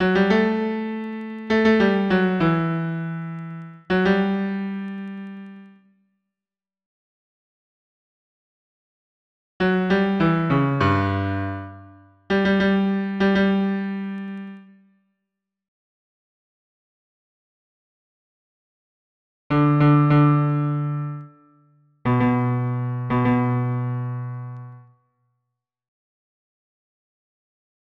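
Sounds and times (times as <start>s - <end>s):
solo piano tango bass: 0.0s - 5.6s, 9.6s - 14.7s, 19.5s - 21.4s, 22.1s - 24.8s.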